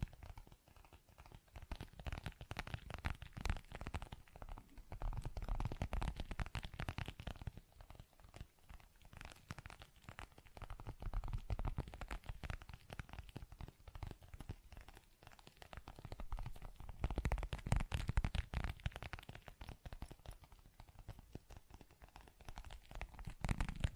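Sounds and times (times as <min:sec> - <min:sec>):
tapping and scratching clicks and rubs: 0:00.0 - 0:23.9
soft low rumble: 0:23.3 - 0:23.9.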